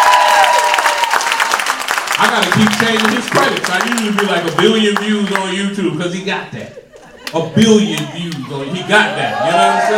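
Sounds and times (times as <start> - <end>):
live audience applause: 0.0 - 5.5
speech: 2.2 - 9.9
laughter: 6.6 - 9.8.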